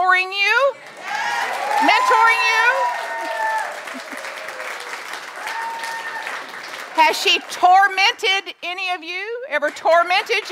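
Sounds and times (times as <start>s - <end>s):
choir and staff applauding: 0.8s - 7.9s
laughter: 3.2s - 4.9s
speech: 7.1s - 10.5s.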